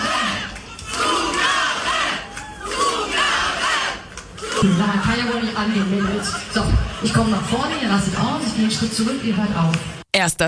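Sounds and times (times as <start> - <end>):
audience at a stage show chanting for an encore: 0.0 - 5.6
laughter: 4.6 - 8.6
speech: 4.6 - 10.4.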